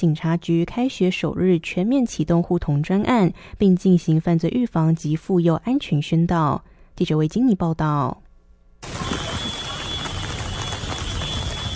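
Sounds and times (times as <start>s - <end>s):
speech: 0.0s - 8.2s
rain falling: 8.8s - 11.7s.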